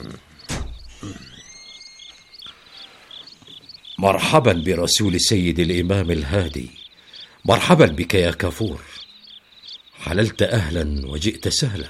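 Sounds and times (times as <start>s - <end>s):
wooden door creaking: 0.0s - 3.8s
crickets chirping at night: 0.0s - 11.8s
speech: 4.0s - 6.8s, 7.4s - 9.0s, 10.0s - 11.8s.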